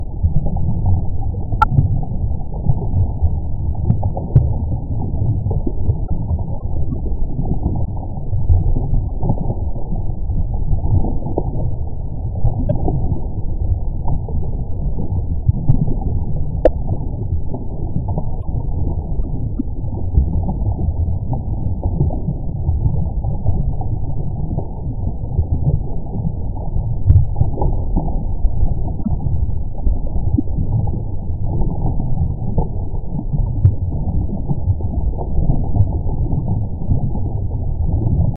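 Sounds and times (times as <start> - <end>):
water: 0.0 - 38.3.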